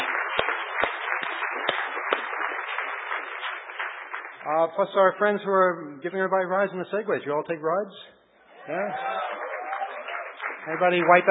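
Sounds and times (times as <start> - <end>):
crowd applause: 0.0 - 4.8, 8.6 - 11.2
speech: 4.5 - 9.4, 10.6 - 11.2.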